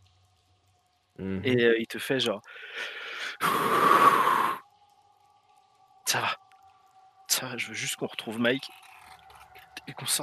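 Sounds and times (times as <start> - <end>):
speech: 1.2 - 4.0, 6.1 - 6.4, 7.4 - 8.9, 9.8 - 10.2
person imitating a character's deep breath held back from a sob: 2.6 - 4.6.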